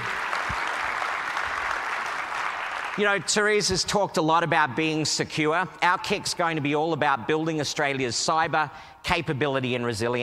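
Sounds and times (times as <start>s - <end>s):
audience applause: 0.0s - 3.3s
speech: 3.0s - 10.2s.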